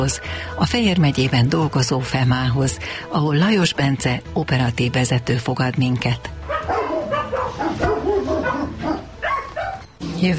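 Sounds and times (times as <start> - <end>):
speech: 0.0 - 6.4, 10.2 - 10.3
large dog barking at an animal rescue call: 6.5 - 9.9.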